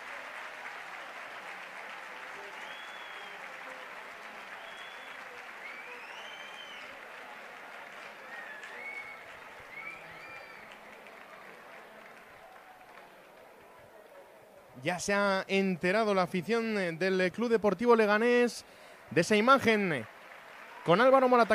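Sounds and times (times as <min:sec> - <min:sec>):
faint whistles and cheers: 0:00.0 - 0:13.4, 0:19.2 - 0:21.5
large stadium crowd applauding new player signing: 0:00.0 - 0:21.5
speech: 0:14.8 - 0:20.1, 0:20.8 - 0:21.5.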